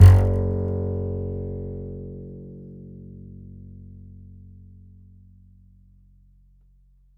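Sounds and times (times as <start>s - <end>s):
E note on the E string of an upright bass: 0.0s - 4.8s.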